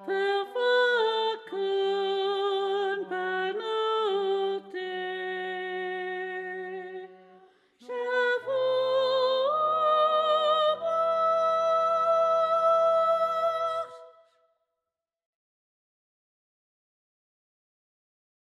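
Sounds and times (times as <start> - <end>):
solo choral music: 0.0 - 14.3.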